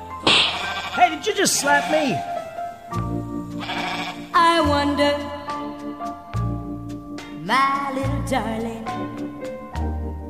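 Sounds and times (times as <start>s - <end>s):
billy goats bleating: 0.3s - 2.8s, 3.4s - 4.4s
speech: 1.2s - 3.1s, 4.6s - 5.4s, 7.5s - 9.1s.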